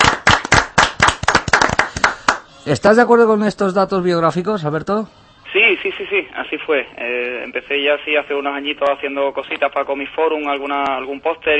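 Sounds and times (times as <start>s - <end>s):
studio audience applauding to welcome a guest: 0.0s - 2.5s
speech: 2.6s - 5.2s, 5.8s - 11.5s.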